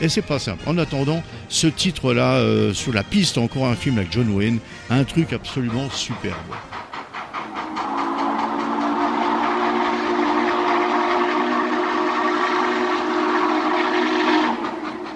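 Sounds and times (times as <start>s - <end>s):
speech: 0.0s - 6.9s
moving train rumbling: 4.0s - 15.1s
steam locomotive whistle: 7.4s - 15.1s.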